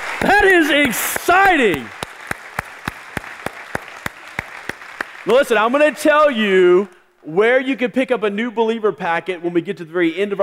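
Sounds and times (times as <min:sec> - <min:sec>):
audience applause: 0:00.0 - 0:06.0
speech: 0:00.2 - 0:02.0, 0:05.2 - 0:10.4.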